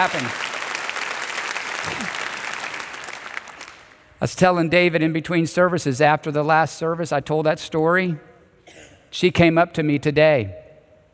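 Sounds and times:
speech: 0:00.0 - 0:00.5, 0:01.8 - 0:02.3, 0:04.2 - 0:10.6
audience applauding: 0:00.0 - 0:04.1.

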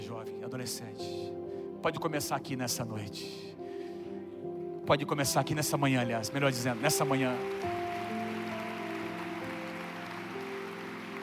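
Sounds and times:
speech: 0:00.1 - 0:03.7, 0:04.9 - 0:07.8
audience applause: 0:06.5 - 0:11.2.

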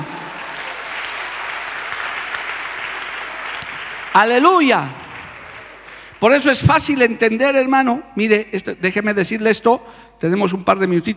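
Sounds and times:
audience applause: 0:00.0 - 0:06.3
speech: 0:04.2 - 0:05.0, 0:06.2 - 0:11.1.

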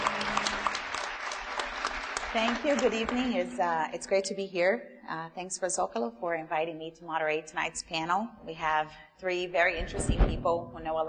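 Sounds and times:
audience applause welcoming a panel moderator at an evening talk: 0:00.0 - 0:03.5
speech: 0:02.3 - 0:11.0.

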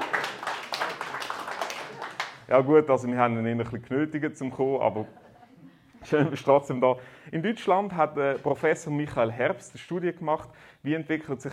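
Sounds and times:
crowd applauding: 0:00.0 - 0:02.5
speech: 0:02.5 - 0:05.2, 0:06.1 - 0:11.5
laughter: 0:05.0 - 0:06.5.

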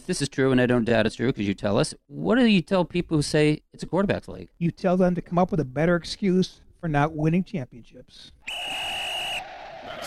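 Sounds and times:
speech: 0:00.1 - 0:09.0
high-pitched whistle: 0:08.4 - 0:09.6.

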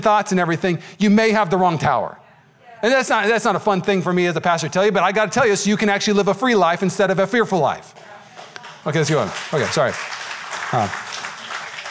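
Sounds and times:
speech: 0:00.0 - 0:02.2, 0:02.8 - 0:08.1, 0:08.8 - 0:11.0
audience clapping: 0:07.9 - 0:11.8.

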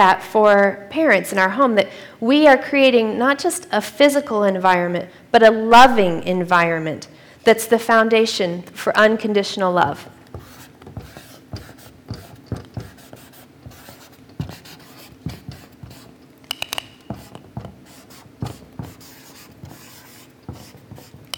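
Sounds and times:
speech: 0:00.0 - 0:10.2
pen drawing a heart on a board: 0:10.3 - 0:21.3.

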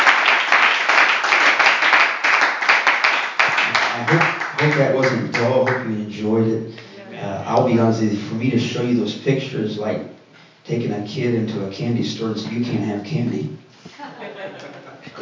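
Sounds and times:
audience clapping hands: 0:00.0 - 0:05.9
speech: 0:04.8 - 0:10.1, 0:10.7 - 0:14.2
laughter: 0:13.9 - 0:15.1.

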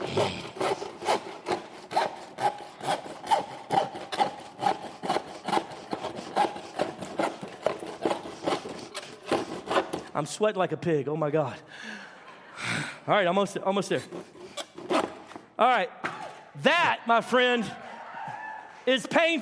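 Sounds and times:
handsaw sawing wood: 0:00.0 - 0:10.2, 0:14.0 - 0:15.5
speech: 0:00.2 - 0:00.4, 0:10.2 - 0:11.7, 0:13.0 - 0:15.0, 0:15.6 - 0:16.0, 0:16.6 - 0:17.8, 0:18.9 - 0:19.4.

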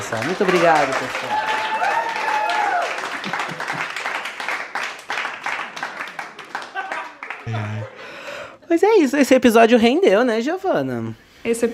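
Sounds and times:
audience applause played from phone: 0:00.0 - 0:07.8
speech: 0:00.1 - 0:01.9, 0:08.7 - 0:11.7
laughter: 0:03.0 - 0:04.1, 0:06.1 - 0:08.2.

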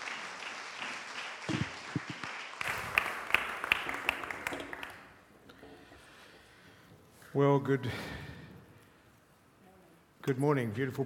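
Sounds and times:
round of applause: 0:00.0 - 0:05.2
speech: 0:07.4 - 0:08.2, 0:10.3 - 0:11.0.

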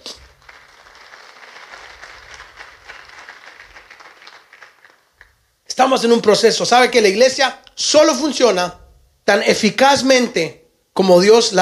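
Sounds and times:
audience applause: 0:00.0 - 0:05.3
speech: 0:05.8 - 0:11.5.

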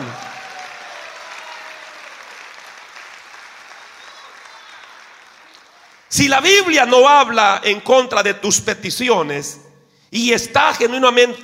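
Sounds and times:
audience applause: 0:00.0 - 0:06.1
speech: 0:06.1 - 0:11.4.

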